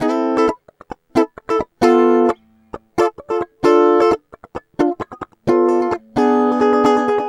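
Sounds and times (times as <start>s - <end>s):
guitar: 0.0s - 7.2s.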